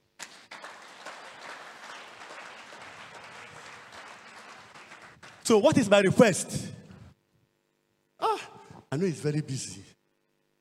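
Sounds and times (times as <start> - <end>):
audience clapping: 0.0 - 6.0
speech: 5.5 - 6.8, 9.0 - 10.0.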